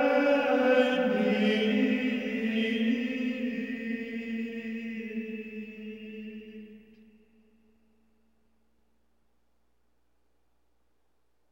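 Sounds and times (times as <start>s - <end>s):
Gregorian chant at Midnight Mass offertory: 0.0s - 7.7s.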